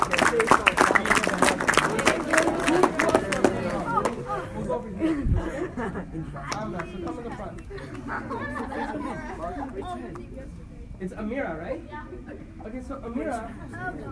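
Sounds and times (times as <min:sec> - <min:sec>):
audience applause: 0:00.0 - 0:04.4
laughter: 0:00.0 - 0:10.0
crowd chatter and voices: 0:00.0 - 0:14.1
speech: 0:09.5 - 0:14.1.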